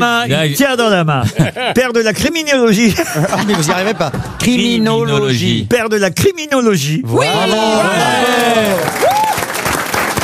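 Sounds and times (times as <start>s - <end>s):
speech: 0.0s - 9.3s
laughter: 1.2s - 2.2s, 2.8s - 4.8s
audience applause during a lively panel exchange: 7.3s - 10.2s.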